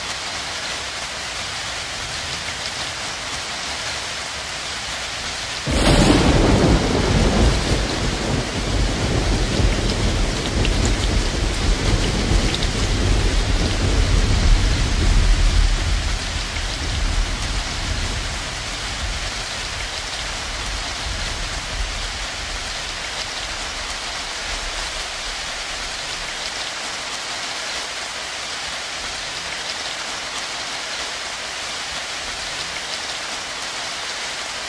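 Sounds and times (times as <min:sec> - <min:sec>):
thunderstorm: 0:05.6 - 0:25.6.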